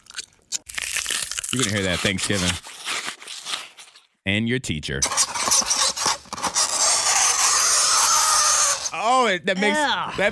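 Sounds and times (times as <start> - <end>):
speech: 1.5 - 2.7, 4.2 - 5.6, 9.2 - 10.2
squeaky marker scraping on a board: 5.0 - 9.0.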